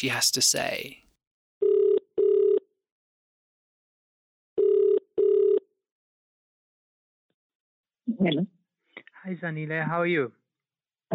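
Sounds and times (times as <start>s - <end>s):
speech: 0.0s - 1.0s, 8.1s - 8.6s, 9.2s - 10.4s
outgoing phone ringback tone: 1.6s - 2.6s, 4.6s - 5.6s.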